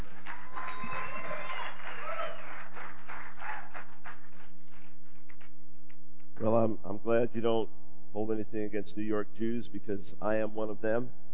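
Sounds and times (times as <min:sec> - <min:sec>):
church audience applause welcoming a speaker: 0:00.0 - 0:05.5
speech: 0:06.4 - 0:11.2.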